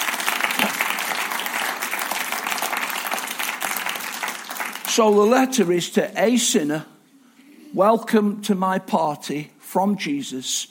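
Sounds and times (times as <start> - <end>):
audience clapping: 0.0 - 6.0
speech: 5.0 - 6.9, 7.7 - 10.6.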